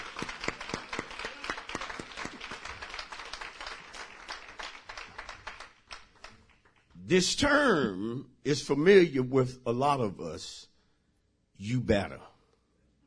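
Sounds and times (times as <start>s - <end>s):
audience hand clapping: 0.0s - 7.0s
speech: 7.1s - 10.7s, 11.6s - 12.3s.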